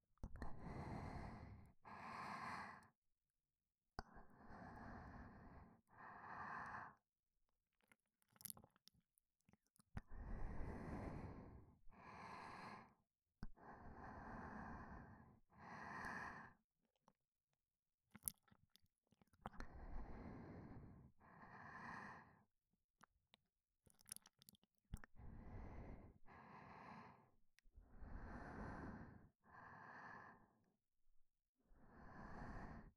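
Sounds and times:
breathing in the left ear: 0.5 - 3.0, 4.0 - 7.0, 10.1 - 16.6, 19.7 - 22.5, 25.2 - 30.8, 31.7 - 32.9.

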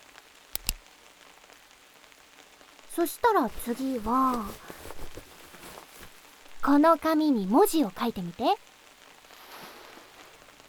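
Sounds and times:
faint hiss: 0.0 - 10.6
ballpoint pen clicks: 0.6 - 0.8
speech: 3.0 - 4.8, 6.6 - 8.7.

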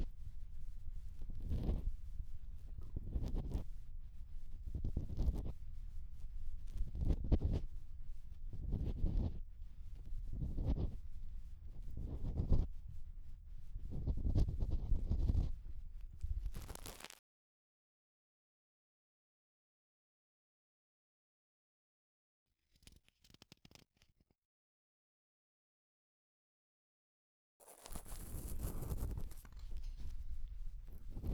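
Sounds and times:
bamboo ear pick at the right ear canal entrance: 0.0 - 17.1, 27.7 - 31.3.

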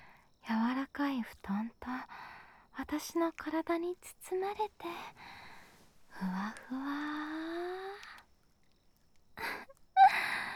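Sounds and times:
speech: 1.1 - 2.1, 2.8 - 5.4, 6.2 - 7.7
soft cute yawn: 5.2 - 8.3, 9.4 - 10.5.

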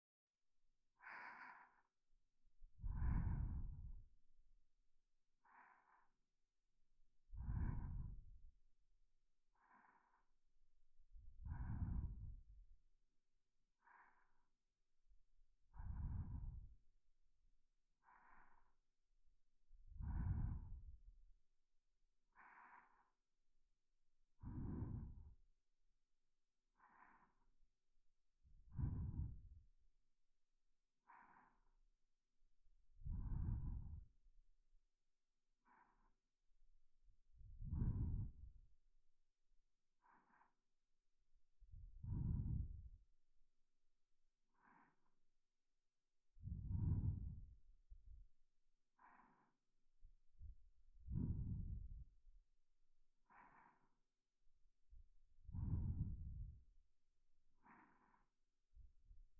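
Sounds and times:
sleeping breath: 1.0 - 2.0, 2.7 - 4.2, 5.2 - 6.3, 7.2 - 8.5, 9.3 - 10.5, 11.1 - 12.6, 13.7 - 14.6, 15.8 - 16.9, 18.0 - 19.0, 19.9 - 21.1, 22.3 - 23.2, 24.3 - 25.4, 26.7 - 27.5, 28.7 - 29.6, 31.0 - 31.8, 33.0 - 34.2, 35.6 - 36.4, 37.4 - 38.6, 40.0 - 40.8, 41.7 - 43.1, 44.5 - 45.2, 46.4 - 48.2, 48.9 - 49.7, 50.4 - 52.1, 53.2 - 54.1, 55.4 - 56.6, 57.5 - 58.4.

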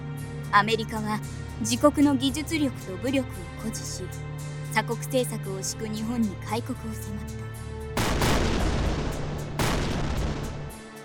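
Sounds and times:
speech: 0.5 - 7.6
naval cannon bombardment: 8.0 - 10.9.

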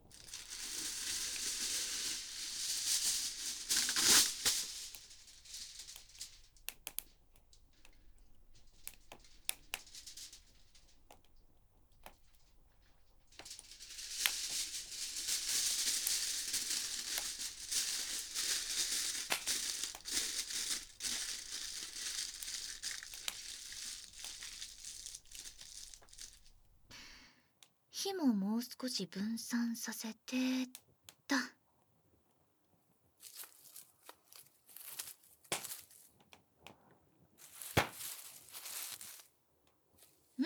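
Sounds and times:
aluminium foil wrapping and crinkling: 0.0 - 27.0, 33.2 - 36.2, 37.4 - 39.4
speech: 28.0 - 31.5.

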